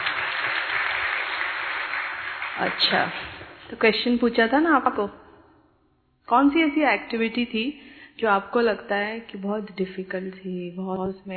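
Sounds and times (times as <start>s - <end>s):
group session audience applause after a cooking activity: 0.0s - 3.6s
speech: 2.6s - 5.2s, 6.3s - 11.3s.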